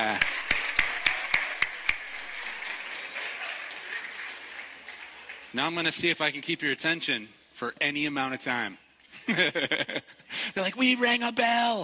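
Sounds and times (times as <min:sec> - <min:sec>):
audience applause: 0:00.0 - 0:05.9
speech: 0:05.5 - 0:11.8
laughter: 0:09.1 - 0:10.5.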